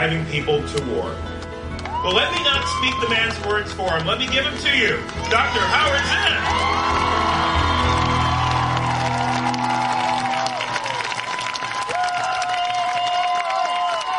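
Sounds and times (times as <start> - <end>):
speech: 0.0 - 1.4, 2.0 - 7.0
large crowd cheering and applauding: 1.6 - 14.1.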